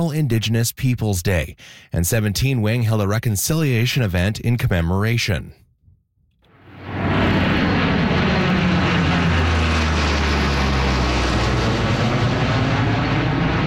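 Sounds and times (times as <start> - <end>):
speech: 0.0 - 5.6
Hercules military aircraft flyover: 6.5 - 13.6.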